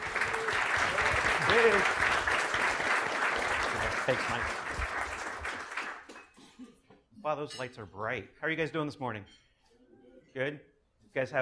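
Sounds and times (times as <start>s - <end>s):
audience applause welcoming a speaker at a regional conference: 0.0s - 6.3s
speech: 1.5s - 2.0s, 4.1s - 4.6s, 7.3s - 9.4s, 10.4s - 11.4s.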